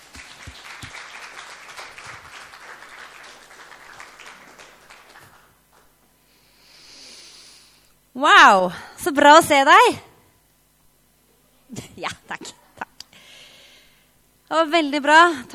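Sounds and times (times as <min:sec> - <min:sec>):
audience applause: 0:00.0 - 0:05.9
speech: 0:08.2 - 0:10.1, 0:14.5 - 0:15.5.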